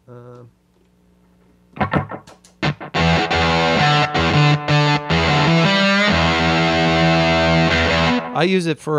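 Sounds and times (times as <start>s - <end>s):
electric guitar through a Pete Cornish NG3 gated fuzz pedal: 1.8s - 8.5s.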